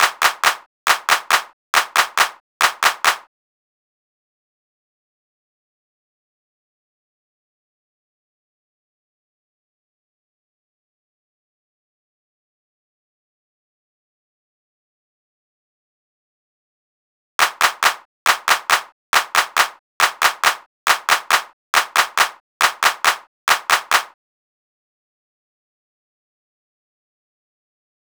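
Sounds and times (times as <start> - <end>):
hand clap: 0.0 - 3.3, 17.4 - 24.2.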